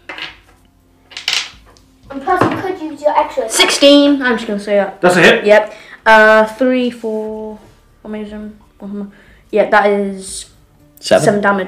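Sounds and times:
dice rattling and clattering onto a hard surface: 0.0s - 1.8s
speech: 2.1s - 11.6s.

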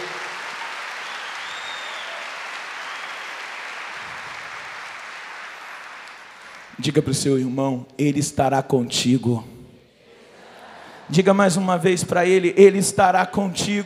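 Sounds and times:
audience applause: 0.0s - 6.9s
speech: 6.8s - 9.6s, 11.1s - 13.8s.

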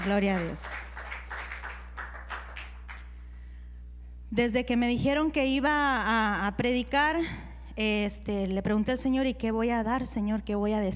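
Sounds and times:
speech: 0.0s - 0.9s, 4.3s - 10.9s
audience applause: 0.0s - 3.0s.

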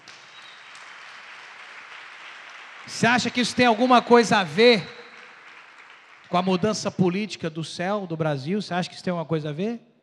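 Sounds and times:
applause: 0.0s - 7.2s
speech: 2.8s - 5.0s, 6.3s - 9.9s.

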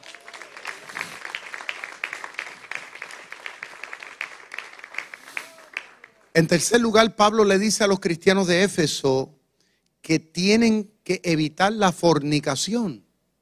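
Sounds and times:
audience applause: 0.0s - 6.4s
speech: 6.4s - 9.4s, 10.1s - 13.0s.

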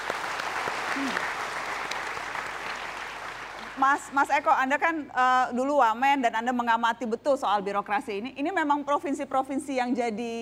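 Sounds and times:
studio audience applause: 0.0s - 3.9s
speech: 1.0s - 1.4s, 3.8s - 10.4s.

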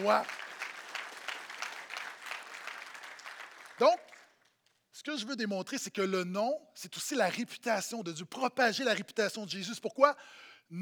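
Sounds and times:
speech: 0.0s - 0.4s, 3.8s - 4.1s, 5.0s - 10.8s
audience applauding: 0.0s - 4.4s.

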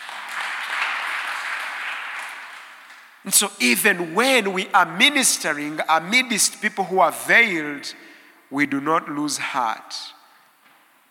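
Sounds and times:
audience hand clapping: 0.0s - 3.2s
speech: 3.2s - 10.2s.

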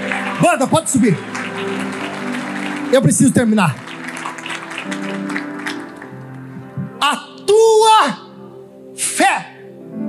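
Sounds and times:
audience applause: 0.0s - 6.5s
speech: 0.4s - 2.0s, 2.9s - 4.0s, 7.1s - 8.2s.

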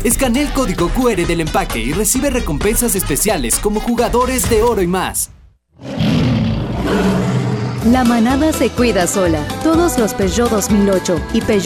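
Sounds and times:
speech: 0.0s - 6.2s, 7.8s - 11.6s
lion roaring: 5.8s - 8.6s.

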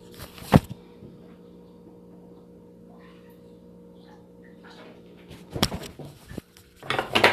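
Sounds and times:
low hum: 0.0s - 7.0s
kitchenware clinking while coffee is being made: 6.8s - 7.3s.

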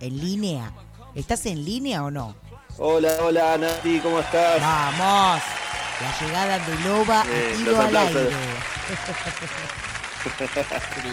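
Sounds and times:
speech: 0.0s - 11.1s
background applause: 3.4s - 11.1s
laughter: 7.4s - 11.1s.

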